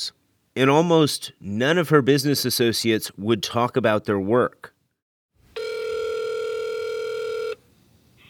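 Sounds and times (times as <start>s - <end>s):
speech: 0.0s - 4.7s
ringback tone from an outgoing phone call: 5.6s - 7.6s.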